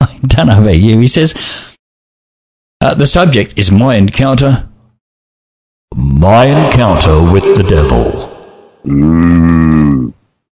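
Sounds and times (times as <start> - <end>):
speech: 0.2 - 1.7, 2.8 - 4.7, 5.9 - 10.2
person imitating a cow mooing: 5.9 - 10.2.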